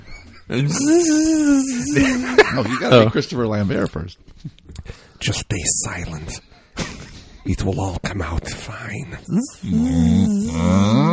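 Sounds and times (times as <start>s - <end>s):
laughter: 0.0s - 3.4s
man's voice imitating a cow being slaughtered: 0.5s - 2.4s, 9.3s - 11.1s
speech: 0.5s - 11.1s.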